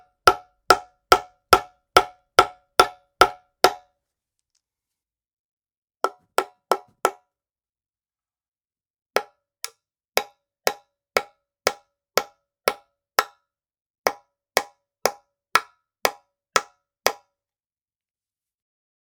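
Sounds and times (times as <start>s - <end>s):
hammering a nail: 0.0s - 3.8s, 6.0s - 7.2s, 9.2s - 13.4s, 14.1s - 17.2s.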